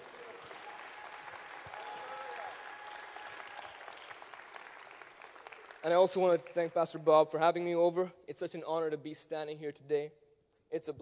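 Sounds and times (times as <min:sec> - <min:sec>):
audience applause: 0:00.0 - 0:06.6
speech: 0:05.8 - 0:11.0.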